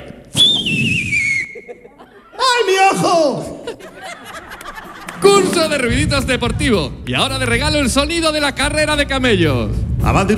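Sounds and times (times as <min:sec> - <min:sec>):
mouth-made archery arrow flight sound effect: 0:00.3 - 0:01.6
laughter: 0:01.4 - 0:06.2
speech: 0:05.5 - 0:10.3.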